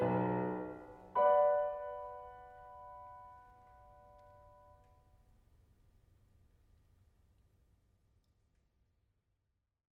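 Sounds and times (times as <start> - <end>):
full ensemble playing: 0.0 - 1.6.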